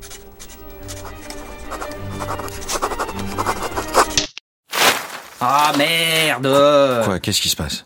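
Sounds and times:
quill pen scratching as a composer writes music: 0:00.0 - 0:04.2
soft music: 0:00.0 - 0:04.2
speech: 0:05.4 - 0:07.8.

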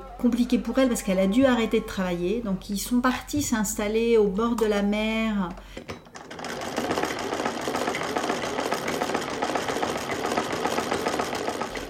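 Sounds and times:
speech: 0:00.2 - 0:06.0
Singer sewing machine running: 0:06.1 - 0:11.8.

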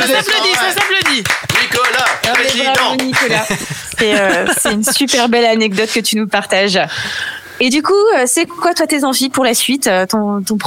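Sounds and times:
laughter: 0:00.0 - 0:01.1, 0:01.7 - 0:05.8
applause: 0:00.0 - 0:03.6
speech: 0:00.0 - 0:10.6.

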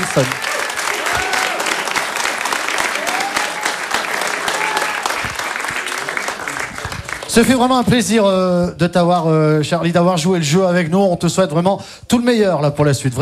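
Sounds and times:
audience applause: 0:00.0 - 0:08.0
speech: 0:00.2 - 0:00.5, 0:07.4 - 0:13.2.

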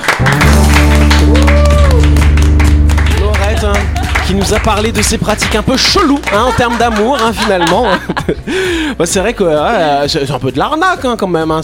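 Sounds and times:
audience applause: 0:00.0 - 0:08.0
speech: 0:04.3 - 0:11.6
laughter: 0:05.7 - 0:08.7.

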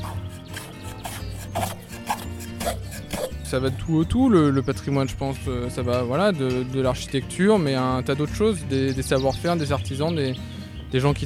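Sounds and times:
carpenter planing an oak door: 0:00.0 - 0:03.9
speech: 0:03.5 - 0:11.2.

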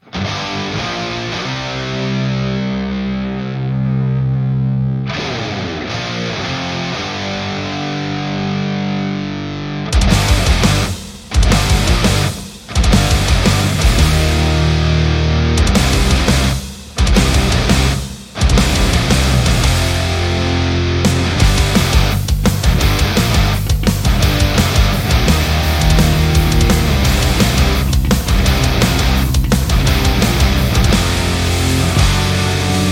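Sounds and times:
heavily distorted rock guitars: 0:00.0 - 0:32.8
pounding rock drums: 0:10.0 - 0:14.7, 0:15.6 - 0:20.3, 0:21.0 - 0:32.8.

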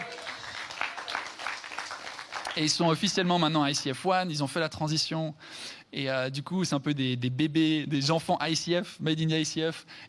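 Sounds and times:
audience applause: 0:00.0 - 0:03.3
speech: 0:02.6 - 0:10.0.

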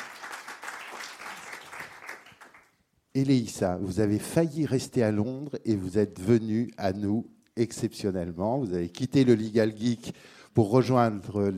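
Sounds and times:
audience applause: 0:00.0 - 0:02.7
speech: 0:03.2 - 0:11.5.

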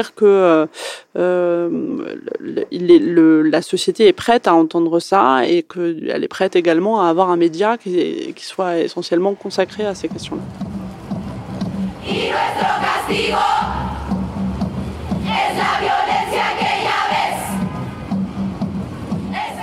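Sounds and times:
speech: 0:00.0 - 0:10.8
steady beat: 0:09.6 - 0:19.6
feminist collective crowd chanting in unison: 0:12.0 - 0:17.9, 0:19.2 - 0:19.6.

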